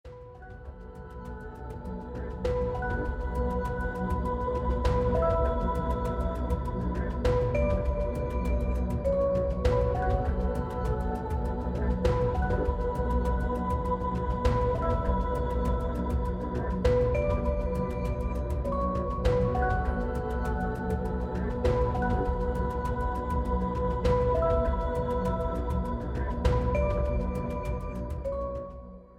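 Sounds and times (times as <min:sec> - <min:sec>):
intense suspenseful music: 0:00.1 - 0:28.8.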